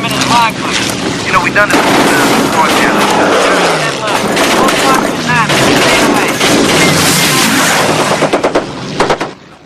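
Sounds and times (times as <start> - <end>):
speech: 0.4 - 5.1
machine-gun fire from the ball turret of the Memphis Belle bomber: 1.7 - 9.4.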